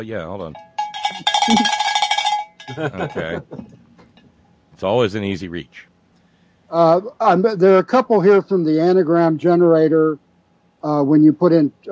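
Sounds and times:
speech: 0.0 - 1.9, 2.7 - 3.9, 4.8 - 5.9, 6.7 - 10.2, 10.8 - 11.9
bell being rung: 0.6 - 3.4
laughter: 2.7 - 4.0.

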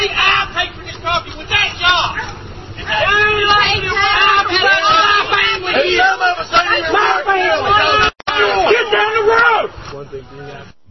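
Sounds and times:
counter-protesters screaming: 1.6 - 9.8.

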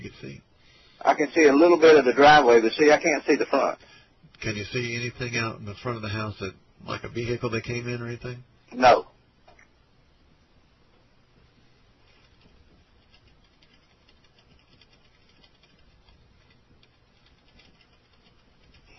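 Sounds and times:
speech: 0.2 - 9.1
typing on a computer keyboard: 13.0 - 18.9.

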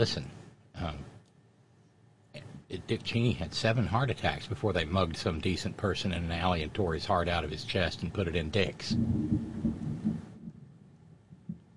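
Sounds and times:
speech: 0.0 - 1.0, 2.7 - 9.8
thunderclap rumbling: 8.5 - 10.7.

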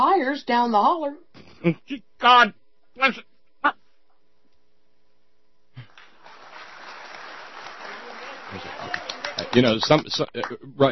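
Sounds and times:
speech: 0.3 - 3.8, 8.5 - 8.8, 9.5 - 10.9
audience clapping: 5.8 - 10.6.

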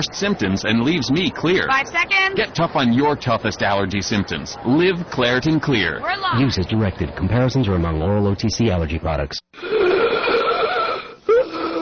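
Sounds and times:
speech: 0.0 - 9.8
wheezing breath of an asthma attack: 9.6 - 11.8.

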